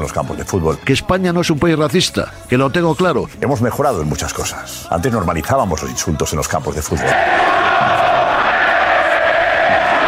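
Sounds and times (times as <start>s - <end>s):
speech: 0.0s - 8.1s
stadium crowd chanting: 7.0s - 10.0s.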